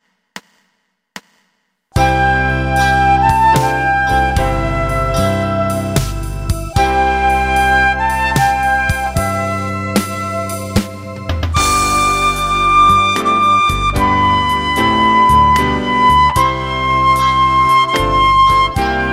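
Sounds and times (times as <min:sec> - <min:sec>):
flute: 0:02.0 - 0:19.1.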